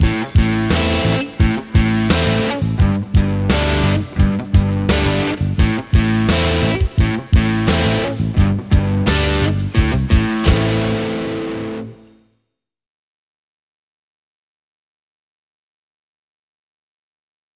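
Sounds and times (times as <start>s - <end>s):
rock metal drum beat and hits: 0.0s - 12.0s.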